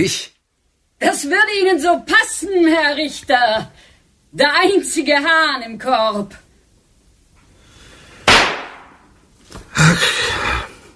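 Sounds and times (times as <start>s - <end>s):
speech: 0.0s - 0.4s, 1.0s - 6.4s, 9.8s - 10.6s
pistol shots: 8.3s - 9.0s.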